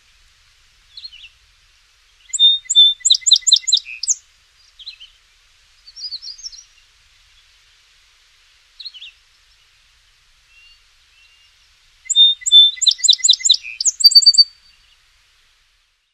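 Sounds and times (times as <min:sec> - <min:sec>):
song sparrow: 0:00.9 - 0:01.4, 0:02.1 - 0:05.2, 0:05.8 - 0:07.6, 0:10.5 - 0:15.1.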